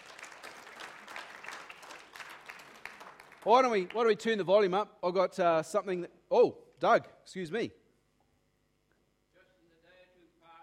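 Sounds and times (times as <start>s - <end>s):
audience applause: 0.0s - 4.2s
speech: 3.4s - 7.8s.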